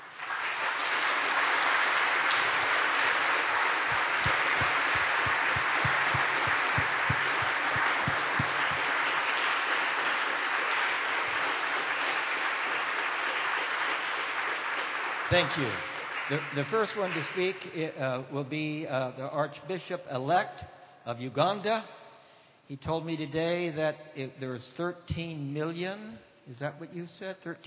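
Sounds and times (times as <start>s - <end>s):
audience applause: 0.0s - 17.4s
speech: 15.3s - 22.0s, 22.7s - 27.6s.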